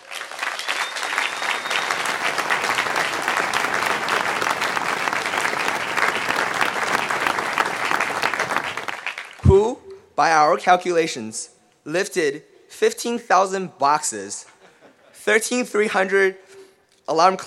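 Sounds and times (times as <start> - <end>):
audience applause: 0.0 - 9.4
speech: 10.2 - 14.6, 15.2 - 16.5, 17.1 - 17.4.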